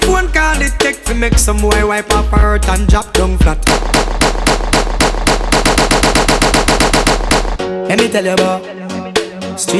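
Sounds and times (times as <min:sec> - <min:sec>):
speech: 0:00.2 - 0:04.3, 0:07.7 - 0:09.0, 0:09.6 - 0:09.7
loud gunshots: 0:03.6 - 0:07.6.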